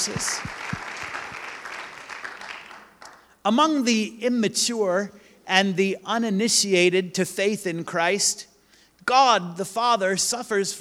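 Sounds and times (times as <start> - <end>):
speech: 0.0 - 0.8, 3.4 - 10.7
church congregation applauding the fathers: 0.0 - 3.3.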